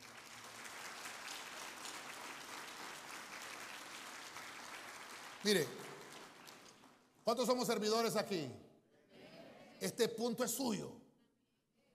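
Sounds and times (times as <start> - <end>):
audience clapping: 0.0 - 8.1
speech: 5.4 - 5.8, 7.2 - 8.6, 9.8 - 11.0.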